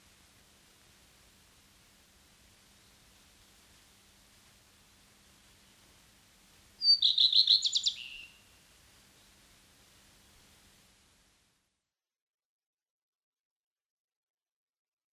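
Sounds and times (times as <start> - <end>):
common redstart calling: 6.8 - 8.4.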